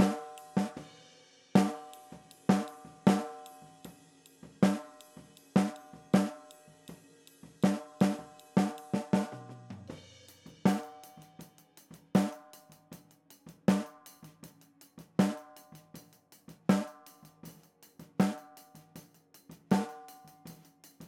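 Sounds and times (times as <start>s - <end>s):
snare drum: 0.0s - 0.9s, 1.6s - 3.6s, 4.6s - 6.6s, 7.6s - 11.4s, 12.2s - 12.5s, 13.7s - 14.3s, 15.2s - 15.8s, 16.7s - 17.2s, 18.2s - 18.6s, 19.6s - 21.0s.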